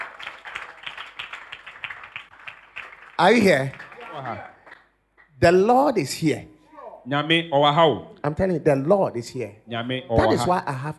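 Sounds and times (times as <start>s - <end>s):
audience clapping hands: 0.0s - 5.4s
speech: 3.2s - 4.5s, 5.4s - 10.9s.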